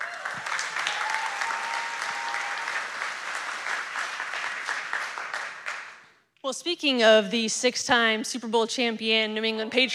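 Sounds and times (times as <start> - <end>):
crowd applauding: 0.0 - 6.1
speech: 6.4 - 9.9.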